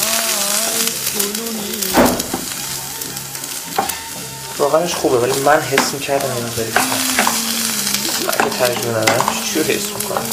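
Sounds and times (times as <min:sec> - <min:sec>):
apples frying and sizzling in a pan: 0:00.0 - 0:10.3
wooden stick stirring and scraping apples in a pan: 0:03.4 - 0:10.3
speech: 0:04.6 - 0:07.2, 0:08.5 - 0:10.3.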